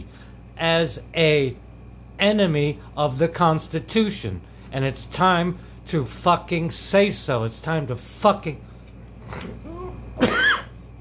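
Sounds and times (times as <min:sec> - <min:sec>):
speech: 0:00.6 - 0:01.6, 0:02.2 - 0:08.7, 0:09.3 - 0:09.6
person coughing: 0:09.8 - 0:10.8.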